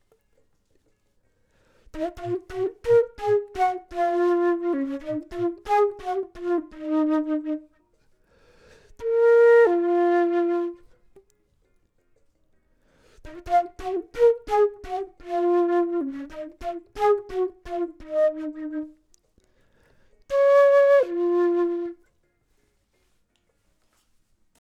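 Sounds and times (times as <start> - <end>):
flute: 1.9 - 8.0, 8.9 - 11.3, 13.2 - 19.2, 20.3 - 22.2.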